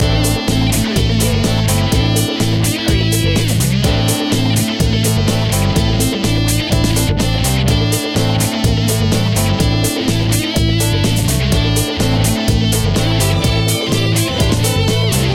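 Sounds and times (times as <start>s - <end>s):
disco funk loop: 0.0s - 15.3s.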